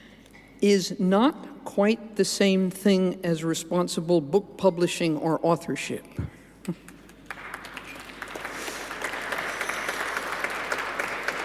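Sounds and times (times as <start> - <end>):
speech: 0.6 - 6.9
audience applause: 7.3 - 11.4.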